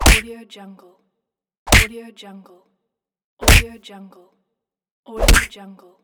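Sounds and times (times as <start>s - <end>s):
classic punch impact: 0.0s - 0.3s, 1.7s - 1.9s, 3.4s - 3.7s, 5.2s - 5.5s.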